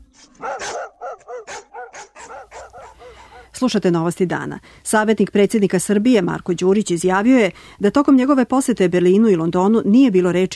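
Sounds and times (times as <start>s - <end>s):
stray dogs barking: 0.2s - 3.6s
speech: 3.6s - 10.5s.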